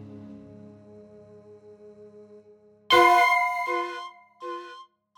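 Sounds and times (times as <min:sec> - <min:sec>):
world instruments playing: 0:02.9 - 0:04.7.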